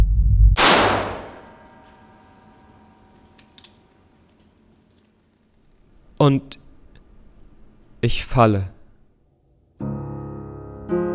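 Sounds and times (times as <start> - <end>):
low rumble: 0.0 - 1.7
loud sharp crack with ringing decay: 0.6 - 2.1
faint metallic clicks: 3.4 - 5.1
speech: 6.2 - 6.6, 8.0 - 8.8.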